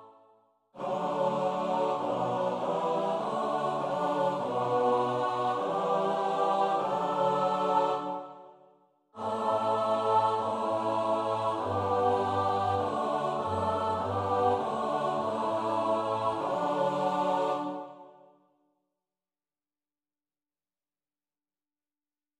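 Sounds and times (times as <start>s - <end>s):
SATB choir singing a psalm: 0.8s - 8.6s, 9.2s - 18.3s.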